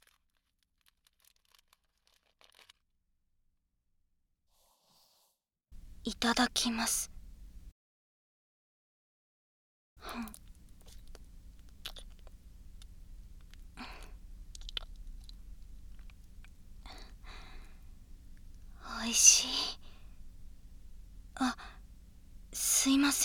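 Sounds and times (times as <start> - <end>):
wet sucking and licking of a hard candy: 0.0 - 2.8, 10.0 - 17.1
speech: 6.0 - 7.1
steady low hiss: 10.2 - 23.2.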